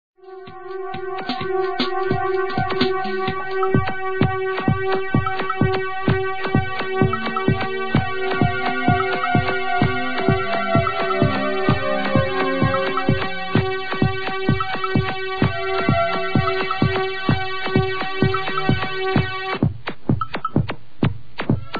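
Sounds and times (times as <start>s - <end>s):
rhythm: 0.2s - 21.7s.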